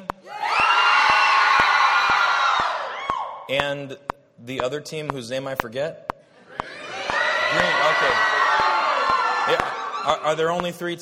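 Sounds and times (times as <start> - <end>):
children's crowd cheering: 0.3 - 3.5, 6.6 - 10.6
speech: 3.5 - 6.1, 7.5 - 8.4, 9.5 - 11.0.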